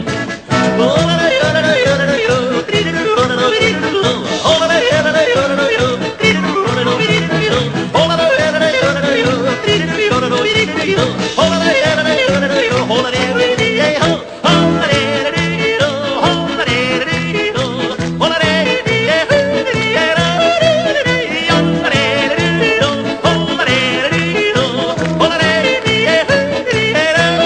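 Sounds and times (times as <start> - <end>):
yodeling: 0.6 - 27.4.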